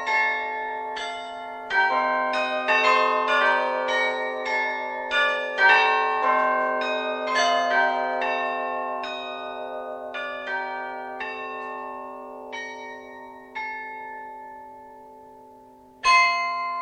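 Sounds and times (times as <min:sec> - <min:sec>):
carillon bells ringing: 0:00.0 - 0:16.8.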